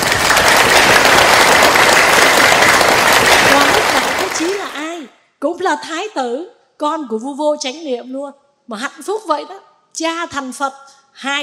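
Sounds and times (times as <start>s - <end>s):
audience applause at a Buddhist dharma talk: 0.0s - 4.9s
speech: 5.6s - 11.4s.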